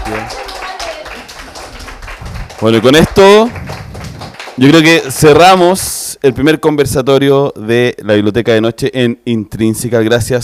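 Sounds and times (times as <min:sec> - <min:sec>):
audience applause: 0:00.0 - 0:05.3
speech: 0:02.6 - 0:03.6, 0:04.6 - 0:10.4.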